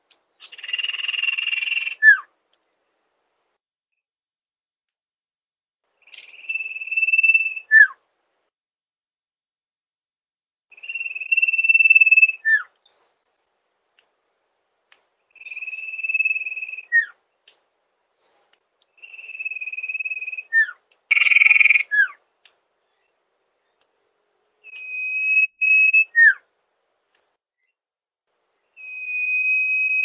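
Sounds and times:
bird song used for training songbirds: 0.4 - 2.3, 6.0 - 8.0, 10.7 - 13.5, 15.3 - 17.5, 18.2 - 22.2, 22.8 - 26.5, 28.6 - 30.0.

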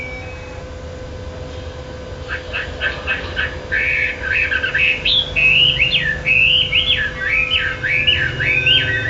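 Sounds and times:
bird song of looping whistled phrases and fast chirps: 2.3 - 9.0.

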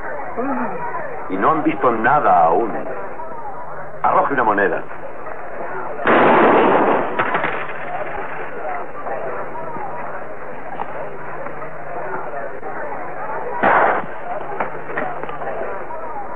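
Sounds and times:
speech: 0.4 - 3.0, 4.0 - 5.0
gunshots: 6.0 - 8.0, 13.6 - 14.2.

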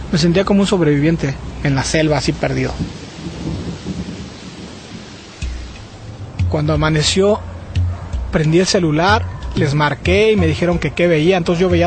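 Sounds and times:
speech: 0.1 - 3.0, 6.5 - 7.5, 8.3 - 11.8
steady hissing rain: 1.2 - 6.5
low thunder rumbling with sharp crack: 2.2 - 8.4.

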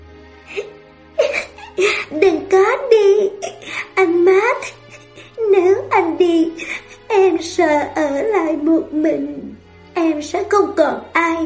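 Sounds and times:
child bursting into tears, sobbing: 0.5 - 7.6
speech: 1.8 - 4.8, 5.5 - 11.4.

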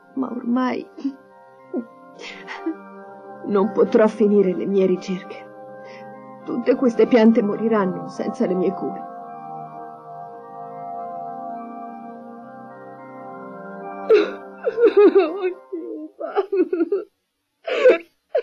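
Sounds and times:
sustained tones: 0.0 - 17.0
speech: 0.2 - 2.8, 3.4 - 5.4, 6.5 - 9.1, 15.0 - 15.6
young girl character sobbing in Italian-dubbed animated film: 1.8 - 2.9, 14.1 - 17.0, 17.7 - 18.4.

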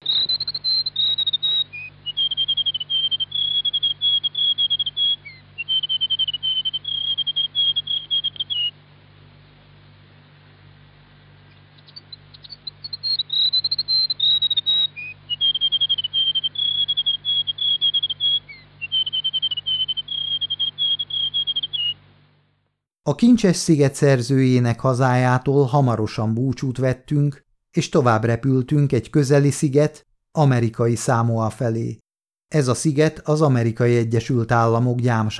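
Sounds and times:
New Zealand warbler whistling varied melodies: 0.0 - 8.8, 11.4 - 22.2
speech: 23.1 - 35.3.

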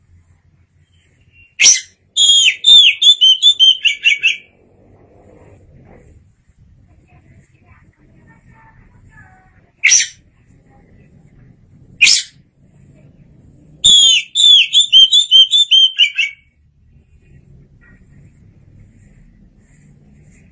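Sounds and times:
Oriental magpie-robin song: 0.8 - 4.5, 13.8 - 16.5.

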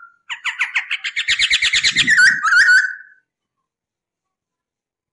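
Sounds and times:
masked laughingthrush song: 0.3 - 3.1.

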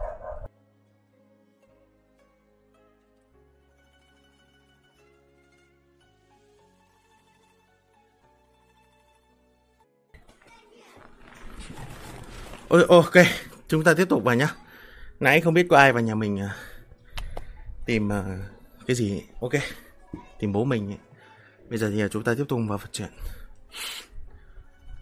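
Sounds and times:
dog barking loudly: 0.0 - 0.5
speech: 12.7 - 14.6, 15.2 - 16.7, 17.9 - 21.1, 21.7 - 24.0.

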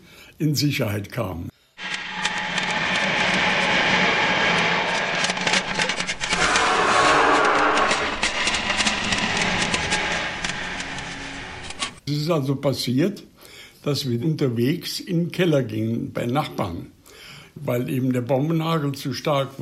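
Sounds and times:
speech: 0.4 - 1.6, 12.3 - 17.0, 17.6 - 19.6
aircraft engines droning in the sky during an air-raid alert: 1.8 - 12.0.

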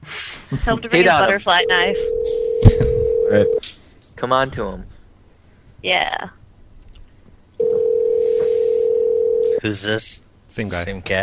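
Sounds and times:
speech: 0.5 - 4.9, 5.8 - 6.4, 9.6 - 11.2
telephone dial tone: 2.0 - 3.6, 7.6 - 9.4.

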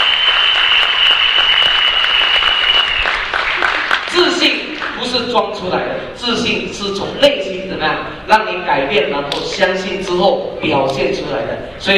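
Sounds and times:
audience applause: 0.0 - 4.1
speech: 5.4 - 11.9.

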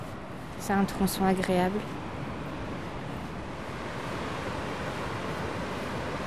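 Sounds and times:
speech: 0.6 - 2.1
water flowing abundantly in a stream: 3.3 - 6.2.

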